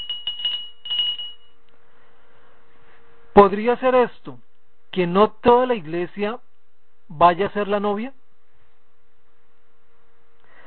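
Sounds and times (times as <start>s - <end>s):
handbell ringing: 0.0s - 1.6s
speech: 3.4s - 4.4s, 5.0s - 6.4s, 7.1s - 8.2s.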